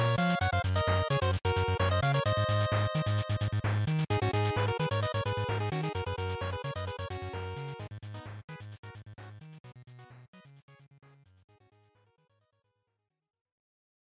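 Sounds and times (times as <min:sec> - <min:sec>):
Game Boy action stage background music: 0:00.0 - 0:10.3.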